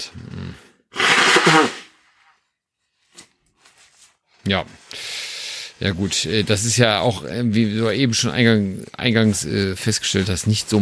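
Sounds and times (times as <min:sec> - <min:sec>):
nose blowing: 0:00.2 - 0:02.1
speech: 0:04.5 - 0:05.1, 0:05.8 - 0:10.8.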